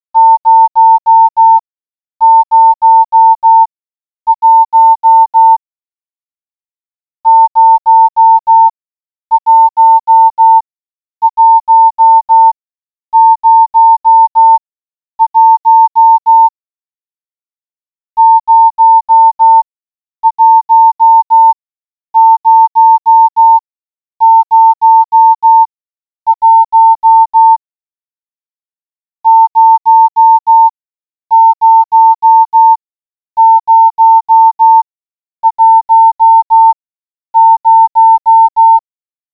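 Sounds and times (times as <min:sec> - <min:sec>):
morse code beeps: 0:00.2 - 0:01.6, 0:02.2 - 0:03.7, 0:04.3 - 0:05.6, 0:07.2 - 0:08.7, 0:09.3 - 0:10.6, 0:11.2 - 0:14.6, 0:15.2 - 0:16.5, 0:18.2 - 0:19.6, 0:20.2 - 0:21.6, 0:22.2 - 0:23.6, 0:24.2 - 0:25.7, 0:26.3 - 0:27.6, 0:29.2 - 0:30.7, 0:31.3 - 0:32.8, 0:33.4 - 0:34.8, 0:35.4 - 0:36.8, 0:37.4 - 0:38.8.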